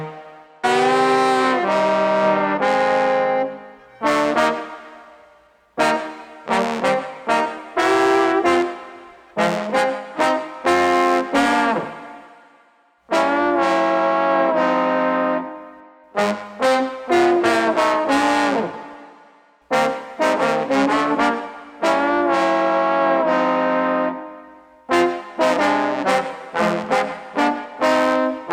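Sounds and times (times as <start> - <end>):
street swagger trumpet and trombone: 0.0 - 12.4, 13.1 - 28.5.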